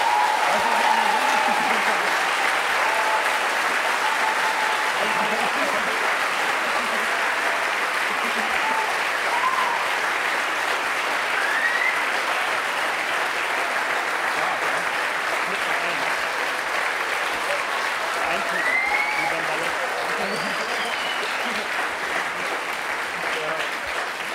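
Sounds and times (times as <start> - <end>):
audience applause: 0.0 - 24.3
laughter: 0.5 - 3.2, 4.6 - 9.0, 18.2 - 23.6.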